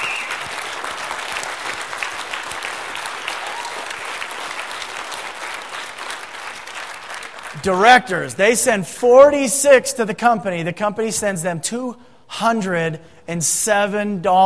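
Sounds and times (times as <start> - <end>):
audience applause: 0.0 - 7.6
speech: 7.6 - 14.4.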